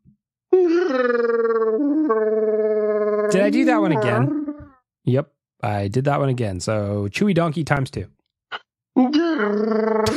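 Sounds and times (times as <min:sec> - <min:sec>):
voice imitating a growling alien creature: 0:00.6 - 0:04.7
speech: 0:00.9 - 0:01.3, 0:03.3 - 0:04.4, 0:05.1 - 0:08.2, 0:09.4 - 0:10.0.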